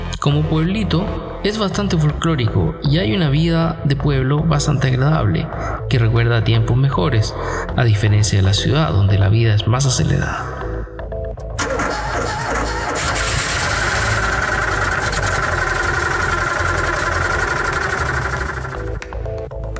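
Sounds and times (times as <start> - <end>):
speech: 0.2 - 10.6
Fiat car engine running: 11.6 - 19.0.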